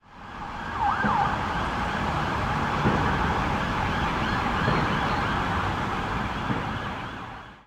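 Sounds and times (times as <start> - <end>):
sirens: 0.0 - 7.6.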